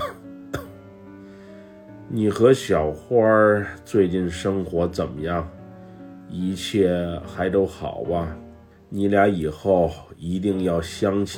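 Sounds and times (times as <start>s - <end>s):
person coughing: 0.0s - 0.8s
speech: 2.1s - 5.6s, 6.3s - 11.3s.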